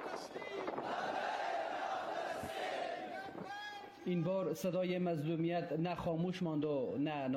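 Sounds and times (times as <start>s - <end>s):
large crowd chanting a solidarity rallying slogan in unison: 0.0s - 3.5s
speech: 4.1s - 7.3s.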